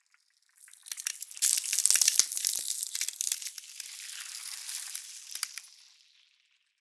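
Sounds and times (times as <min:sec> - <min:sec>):
ice cracking: 0:00.6 - 0:06.0.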